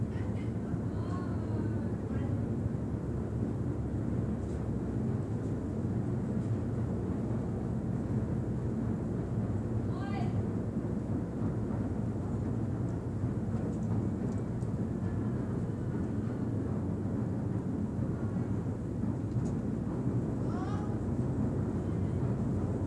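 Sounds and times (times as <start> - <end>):
pier train: 0.0 - 22.8
voices on a pier train: 0.1 - 2.4, 20.4 - 21.0.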